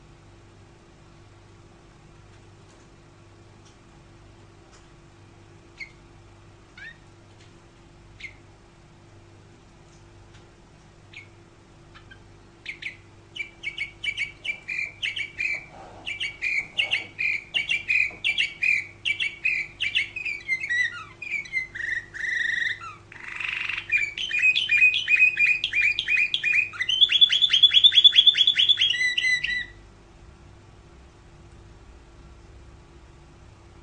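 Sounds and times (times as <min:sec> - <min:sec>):
low steady hum: 0:00.0 - 0:33.8
canary song: 0:05.6 - 0:07.2, 0:08.0 - 0:08.6, 0:11.0 - 0:29.8.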